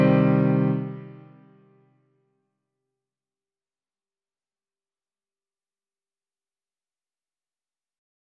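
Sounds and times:
piano: 0.0s - 1.8s.

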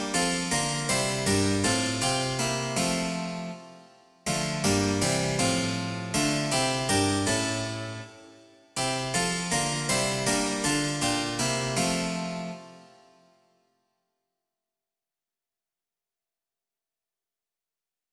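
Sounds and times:
harpsichord: 0.0s - 12.9s.

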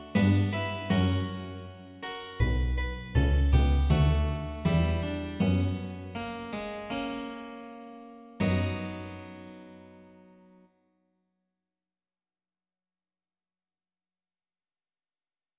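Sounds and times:
double bass: 0.0s - 7.0s, 8.4s - 9.5s
harpsichord: 0.0s - 10.4s.

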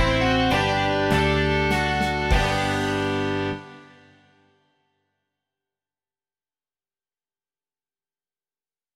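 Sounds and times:
rock music: 0.0s - 4.5s.

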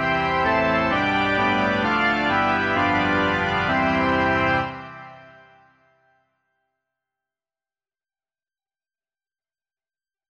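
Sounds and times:
organ: 0.0s - 5.8s.

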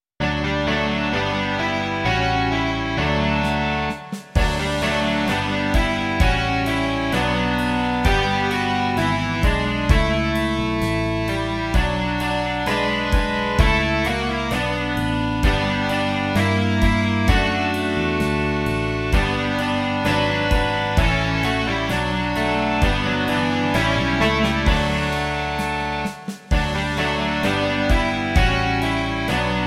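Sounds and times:
rock music: 0.2s - 29.6s.

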